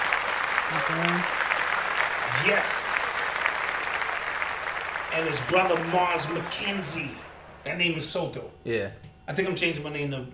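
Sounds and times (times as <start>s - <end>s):
hands clapping in the studio: 0.0s - 7.4s
speech: 0.7s - 1.4s, 2.3s - 3.0s, 5.1s - 10.3s.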